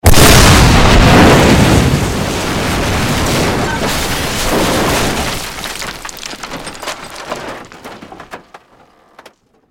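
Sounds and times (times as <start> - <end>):
explosion: 0.0 - 7.2.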